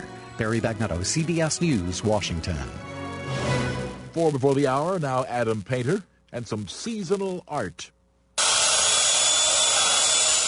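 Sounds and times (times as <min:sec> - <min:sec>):
speech: 0:00.4 - 0:03.4, 0:04.2 - 0:08.0
chainsaw carving a block of ice: 0:08.4 - 0:10.4.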